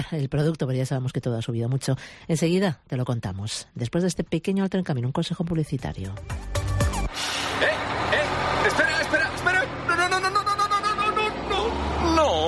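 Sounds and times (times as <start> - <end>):
speech: 0.0 - 6.7
bus engine rumbling as it pulls away: 6.9 - 12.4
bus hissing as it pulls away: 7.1 - 7.8.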